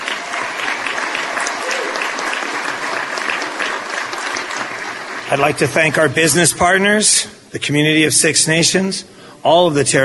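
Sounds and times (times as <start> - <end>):
audience round of applause: 0.0 - 6.5
speech: 5.3 - 10.0.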